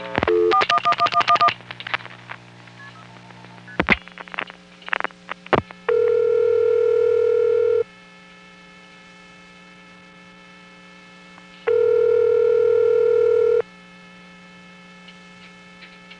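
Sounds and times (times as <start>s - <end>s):
telephone dialing digits into a trunk: 0.3s - 1.5s, 5.9s - 7.8s, 11.7s - 13.6s.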